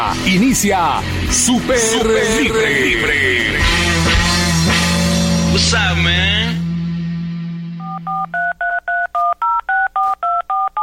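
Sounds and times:
speech: 0.1s - 3.8s, 5.5s - 6.4s
low hum: 1.6s - 8.6s
touch-tone dialing beeps of a call to a cell phone: 7.8s - 10.8s.

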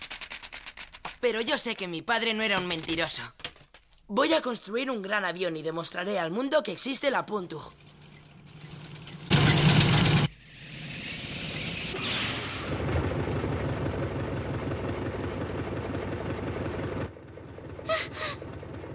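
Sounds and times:
speech: 1.2s - 3.4s, 4.1s - 7.8s
car engine approaching: 7.8s - 18.9s.

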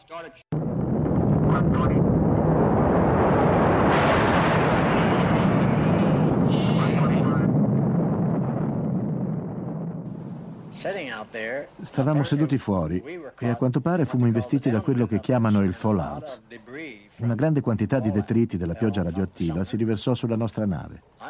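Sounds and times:
speech: 0.1s - 0.5s, 1.5s - 2.1s, 10.8s - 21.2s
underwater atomic bomb explosion at Bikini: 0.5s - 11.0s.

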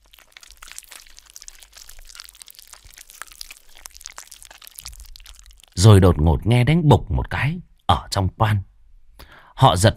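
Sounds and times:
eerie wet squelching, smacking chewing: 0.0s - 5.9s
speech: 5.8s - 8.7s, 9.6s - 9.9s.

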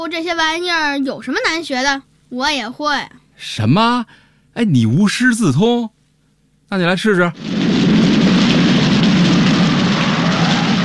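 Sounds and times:
speech: 0.0s - 6.0s, 6.7s - 7.6s
rain falling: 7.3s - 10.8s.

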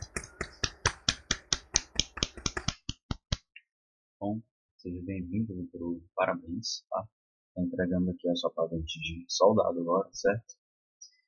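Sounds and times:
group clapping in unison at a military police battalion ceremony: 0.0s - 3.4s
speech: 4.2s - 10.6s.

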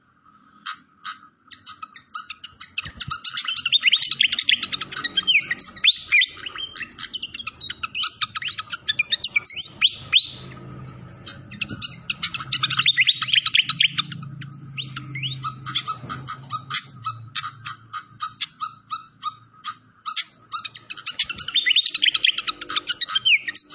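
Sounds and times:
Malaysian pied fantail singing: 0.7s - 10.4s, 11.2s - 23.7s.

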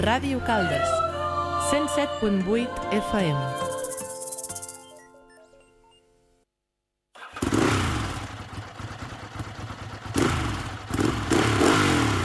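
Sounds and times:
speech: 0.1s - 1.0s, 1.7s - 3.6s
short tonal jingle: 3.4s - 6.2s
motorcycle engine revving: 7.2s - 12.2s.

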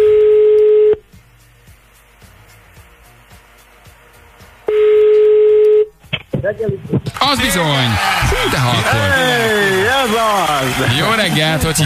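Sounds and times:
steady telephone tone as a call is placed: 0.0s - 1.0s, 4.7s - 5.9s
speech: 6.5s - 11.8s
laughter: 7.4s - 11.8s.

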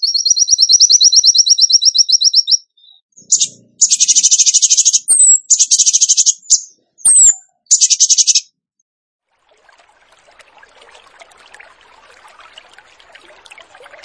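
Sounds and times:
bird trilling: 0.0s - 8.5s.

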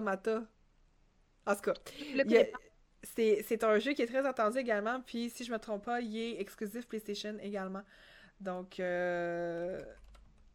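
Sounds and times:
speech: 0.0s - 0.6s, 1.4s - 10.0s
typing on a computer keyboard: 9.4s - 10.5s.

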